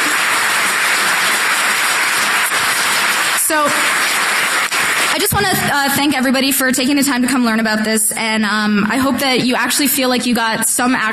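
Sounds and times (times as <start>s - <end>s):
audience clapping: 0.0s - 6.4s
speech: 5.4s - 11.1s.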